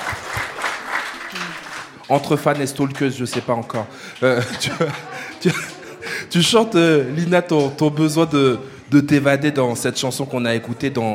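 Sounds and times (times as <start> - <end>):
audience applause: 0.0 - 6.2
speech: 2.1 - 5.6, 6.3 - 11.1
laughter: 4.1 - 6.5.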